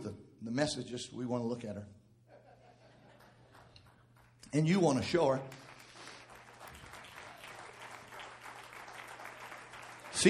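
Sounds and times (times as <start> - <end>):
speech: 0.0 - 2.0, 4.5 - 5.6
laughter: 2.3 - 3.8
audience applause: 5.5 - 10.2.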